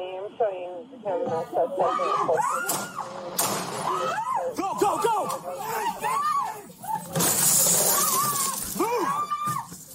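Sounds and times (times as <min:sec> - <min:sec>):
speech: 0:00.4 - 0:06.7
people shouting urgently: 0:01.8 - 0:03.0, 0:03.8 - 0:07.2, 0:07.8 - 0:09.8
door being smashed in during breach: 0:07.0 - 0:09.2.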